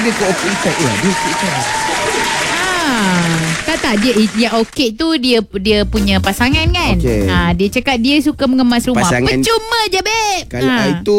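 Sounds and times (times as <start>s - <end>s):
audience applause: 0.0s - 4.8s
speech: 0.1s - 2.0s, 2.9s - 11.1s.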